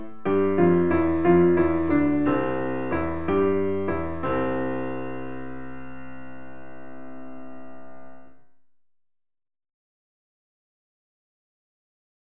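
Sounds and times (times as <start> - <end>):
keyboard pattern: 0.0 - 5.8.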